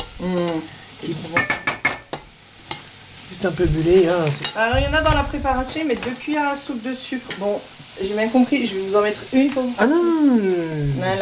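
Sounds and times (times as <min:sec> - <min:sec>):
butter melting and sizzling in a pan: 0:00.0 - 0:11.1
speech: 0:00.2 - 0:01.7, 0:03.4 - 0:11.1.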